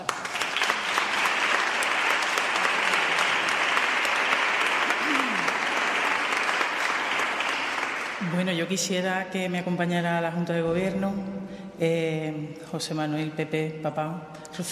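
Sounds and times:
audience applause: 0.0 - 8.3
speech: 8.4 - 14.6.

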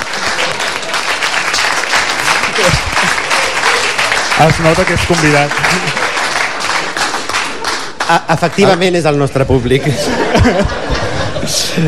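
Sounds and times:
audience applause: 0.0 - 9.2
laughter: 2.2 - 4.0, 4.7 - 6.2, 7.3 - 11.8
speech: 4.4 - 6.0, 8.1 - 11.8.

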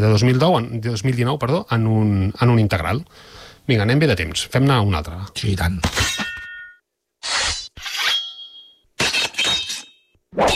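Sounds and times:
speech: 0.0 - 6.2
metal swords clashing: 5.8 - 10.5.

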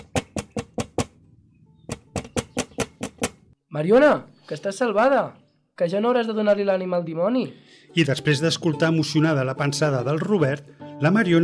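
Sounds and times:
knocking on window glass: 0.0 - 1.2, 1.9 - 3.4
speech: 3.8 - 11.4.

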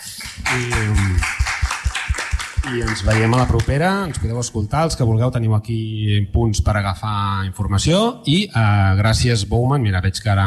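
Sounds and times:
audience applause: 0.0 - 4.5
speech: 0.5 - 1.1, 2.7 - 10.4.

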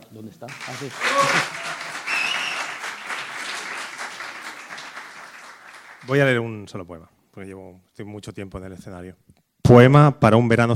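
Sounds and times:
speech: 0.2 - 1.7, 6.0 - 10.7
audience applause: 0.5 - 6.4
faint whistle or cheer: 1.0 - 3.2.

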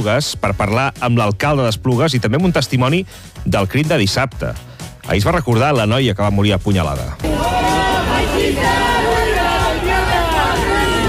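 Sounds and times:
speech: 0.0 - 7.8
crowd shouting and jeering during a minute of silence: 7.2 - 11.0.

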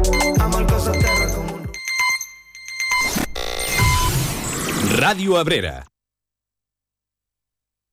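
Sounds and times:
mobile phone ringing with a loud electronic ringtone: 0.1 - 3.9
speech: 5.1 - 5.9.

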